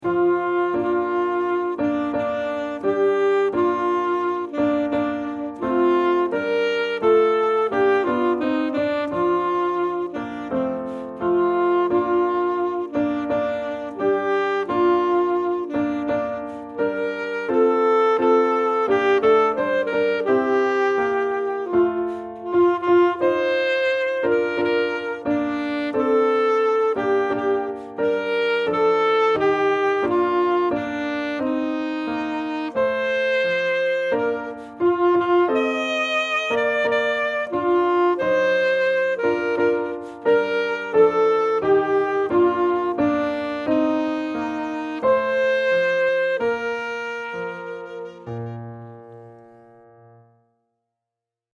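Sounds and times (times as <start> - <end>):
saxophone playing a patriotic prayer: 0.0 - 49.7.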